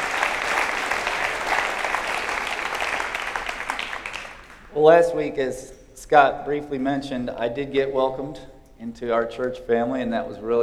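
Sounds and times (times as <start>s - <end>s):
church congregation applauding to welcome a speaker to the pulpit: 0.0s - 5.0s
speech: 4.8s - 10.6s.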